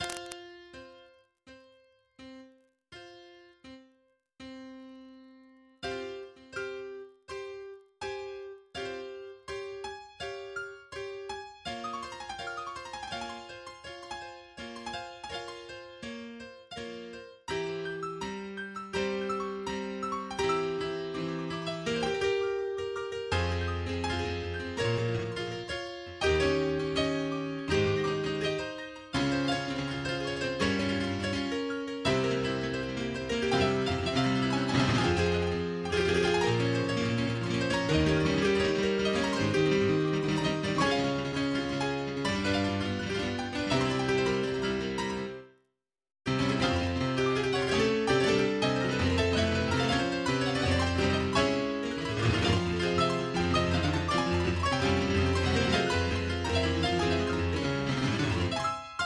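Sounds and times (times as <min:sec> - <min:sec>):
piano: 0:00.0 - 0:45.7, 0:46.3 - 0:59.0.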